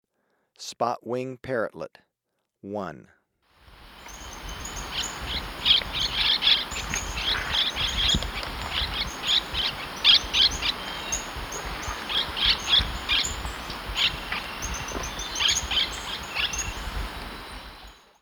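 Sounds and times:
parrotlets chattering in Ecuador: 0:03.8 - 0:18.0.

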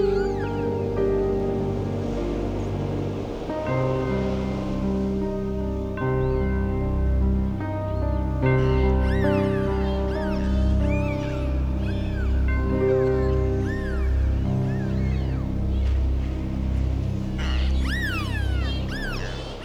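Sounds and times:
dolphin whistles: 0:00.0 - 0:03.3, 0:08.2 - 0:19.6
synthesized music with sustained low chords: 0:00.0 - 0:19.6.

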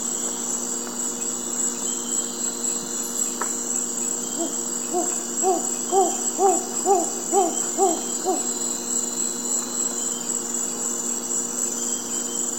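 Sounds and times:
mottled owl calling in South American eastern lowlands: 0:04.3 - 0:08.9.

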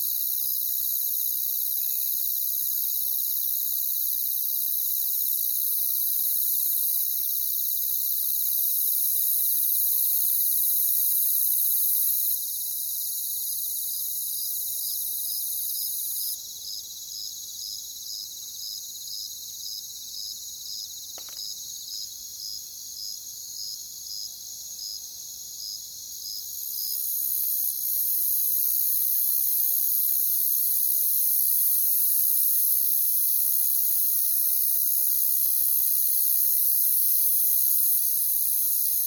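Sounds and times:
cricket chirping in short pulses: 0:00.0 - 0:39.0
faint tap: 0:21.2 - 0:21.4.

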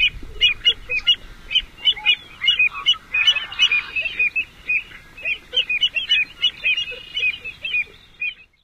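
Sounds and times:
American Avocet of North America: 0:00.0 - 0:08.6.

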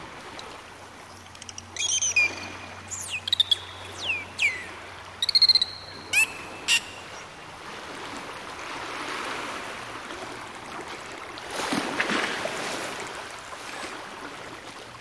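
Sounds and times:
sea waves: 0:00.0 - 0:14.9
dolphins clicking: 0:00.3 - 0:07.2.

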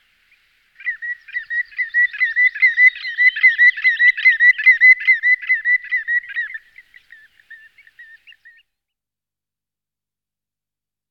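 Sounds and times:
Common greenshank whistled calls: 0:00.8 - 0:08.6.

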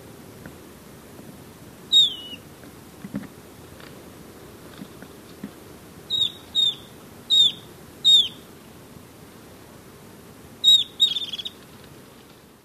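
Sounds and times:
golden-faced tyrannulet high falling whistles: 0:01.9 - 0:02.4, 0:06.1 - 0:08.4, 0:10.6 - 0:11.5.

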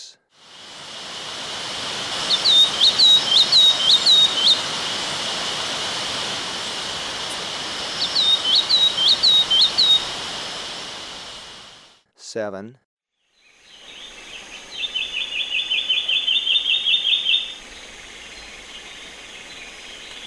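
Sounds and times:
Olivaceous Greenlet calling in Ecuador: 0:02.1 - 0:10.5, 0:14.7 - 0:17.8.

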